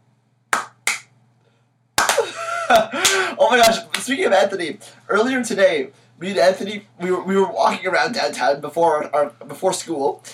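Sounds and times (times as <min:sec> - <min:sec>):
slow clap: 0:00.5 - 0:01.1, 0:02.0 - 0:04.1
speech: 0:02.7 - 0:10.3.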